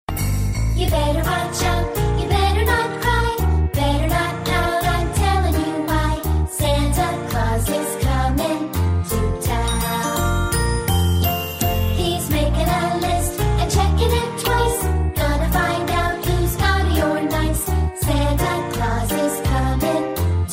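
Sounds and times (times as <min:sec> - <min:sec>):
Santa Christmas song: 0:00.1 - 0:20.5.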